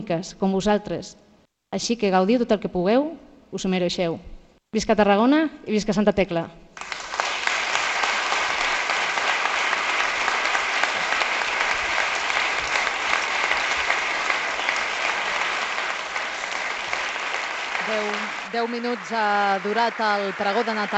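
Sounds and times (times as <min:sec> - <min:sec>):
speech: 0:00.0 - 0:06.6, 0:18.5 - 0:20.9
audience applause in council chamber: 0:06.8 - 0:20.9.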